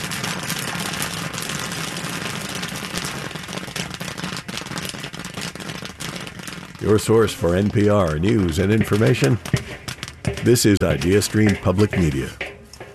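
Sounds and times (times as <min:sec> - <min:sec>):
kettle corn popping in a kettle at a festival in Chagrin Falls: 0:00.0 - 0:12.9
speech: 0:06.8 - 0:09.6, 0:10.4 - 0:12.4.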